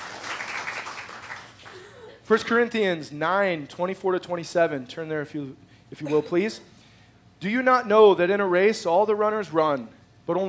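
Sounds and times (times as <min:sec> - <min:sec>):
audience applause: 0:00.0 - 0:01.9
speech: 0:02.3 - 0:06.7, 0:07.4 - 0:10.4.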